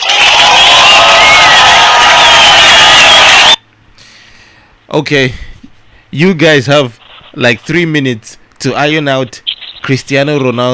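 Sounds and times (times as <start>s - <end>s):
audience applause and cheering: 0.0s - 3.6s
speech: 5.0s - 5.5s, 6.1s - 10.7s.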